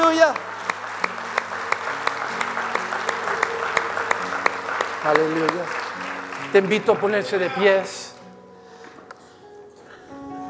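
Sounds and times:
audience applauding: 0:00.0 - 0:08.1
speech: 0:05.0 - 0:05.8, 0:06.5 - 0:08.1.

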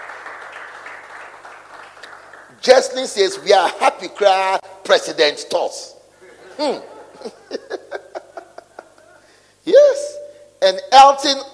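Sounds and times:
church audience clapping: 0:00.0 - 0:03.0
speech: 0:02.6 - 0:06.0, 0:06.6 - 0:07.4, 0:10.7 - 0:11.5
laughter: 0:06.2 - 0:09.3.

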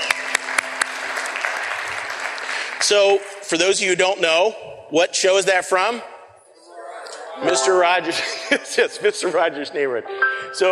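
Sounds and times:
small audience clapping: 0:00.0 - 0:03.3
speech: 0:02.8 - 0:06.1, 0:07.4 - 0:10.7.

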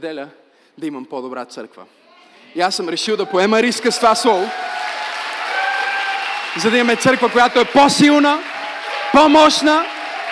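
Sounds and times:
speech: 0:00.0 - 0:04.8, 0:06.6 - 0:08.5, 0:09.2 - 0:10.0
audience applauding: 0:03.2 - 0:10.3.

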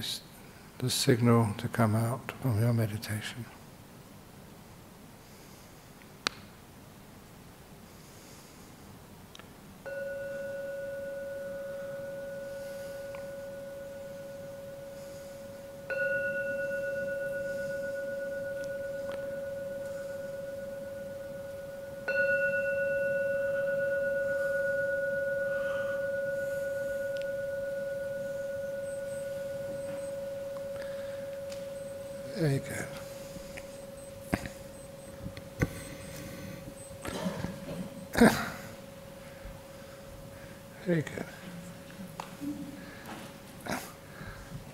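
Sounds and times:
speech: 0:00.0 - 0:03.6
meditation gong struck: 0:09.8 - 0:42.2.

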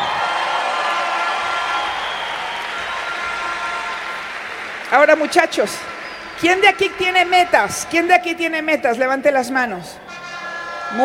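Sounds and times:
audience applause: 0:00.0 - 0:08.3
speech: 0:04.9 - 0:10.0.

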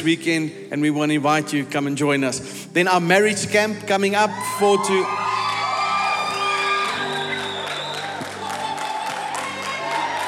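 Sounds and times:
speech: 0:00.0 - 0:05.4
sustained music: 0:00.0 - 0:10.2
congregation at a Pentecost Sunday church service cheering and whooping: 0:04.3 - 0:10.2.

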